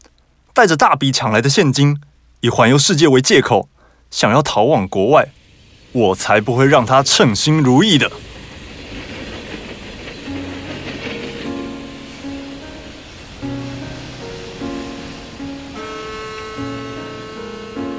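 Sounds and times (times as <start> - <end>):
speech: 0.6 - 8.3
train rumbling along: 4.2 - 17.9
simple melodic tune: 10.4 - 17.9.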